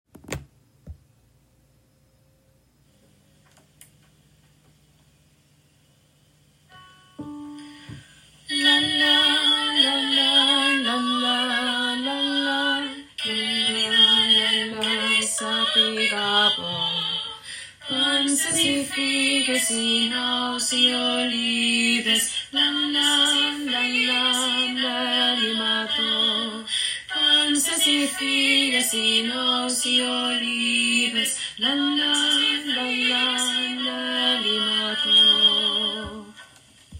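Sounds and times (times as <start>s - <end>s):
tenor singing: 7.8s - 36.4s.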